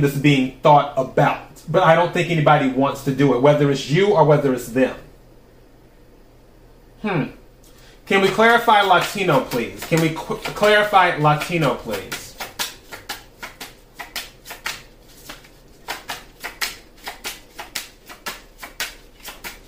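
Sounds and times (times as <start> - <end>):
speech: 0.0 - 5.1, 7.0 - 7.4, 8.1 - 12.2
tarot cards being shuffled and drawn: 8.1 - 19.6.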